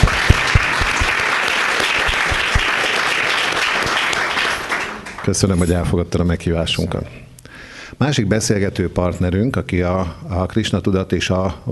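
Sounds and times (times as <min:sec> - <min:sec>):
audience clapping: 0:00.0 - 0:05.6
speech: 0:05.3 - 0:07.3, 0:08.0 - 0:11.7.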